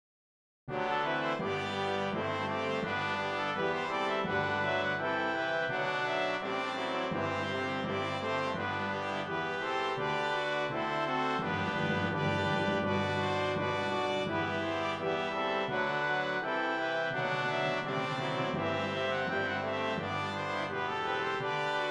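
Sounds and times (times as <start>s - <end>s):
brass playing a hymn: 0.7s - 21.9s.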